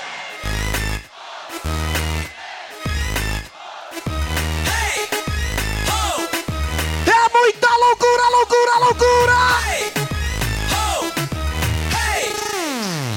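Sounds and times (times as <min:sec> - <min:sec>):
loud crowd at a party shouting and cheering: 0:00.0 - 0:12.8
MC calling on the crowd to raise hands and shout: 0:07.0 - 0:10.0.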